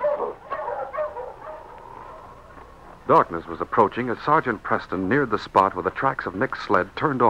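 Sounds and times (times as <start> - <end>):
sled dog team yipping and barking in a snowy chase scene: 0.0 - 5.0
speech: 3.1 - 7.2.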